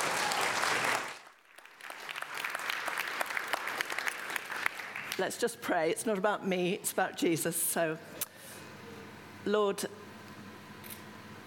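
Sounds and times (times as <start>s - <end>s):
audience applause: 0.0s - 5.2s
speech: 5.2s - 8.2s, 9.4s - 10.0s.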